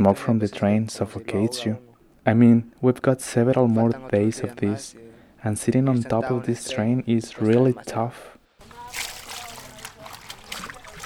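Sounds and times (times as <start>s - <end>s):
speech: 0.0s - 8.3s
water sloshing as clothes are washed by hand in a wash tub: 8.6s - 11.0s.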